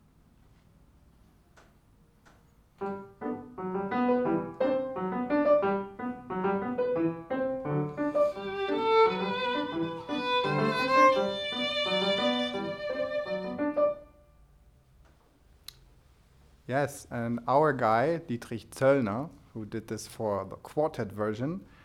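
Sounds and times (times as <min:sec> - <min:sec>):
piano accompaniment: 0:02.7 - 0:14.5
violin playing: 0:07.9 - 0:14.2
speech: 0:16.7 - 0:21.7.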